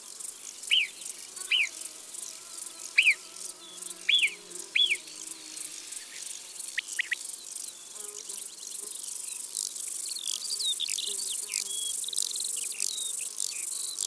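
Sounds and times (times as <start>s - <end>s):
steady high insect hiss: 0.0s - 14.0s
bird chirps: 0.7s - 1.7s, 3.0s - 3.2s, 4.1s - 5.0s, 6.8s - 7.3s
Alpine marmot whistling: 6.8s - 7.2s.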